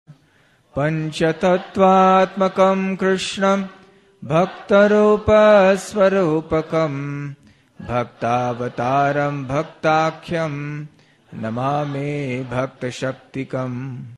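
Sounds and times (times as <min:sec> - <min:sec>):
prayer being sung: 0:00.7 - 0:14.1.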